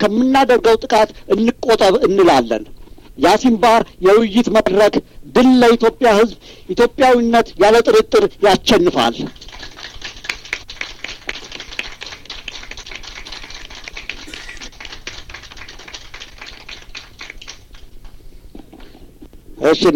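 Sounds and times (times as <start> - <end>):
speech: 0.0 - 9.5, 19.6 - 19.9
audience applauding at a discussion forum: 9.3 - 18.0.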